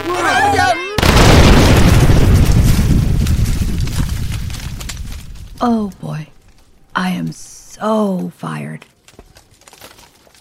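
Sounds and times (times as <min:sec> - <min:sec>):
glowing red-hot book exploding with roaring rumble: 0:01.0 - 0:05.6
speech: 0:05.6 - 0:06.3, 0:07.0 - 0:08.9.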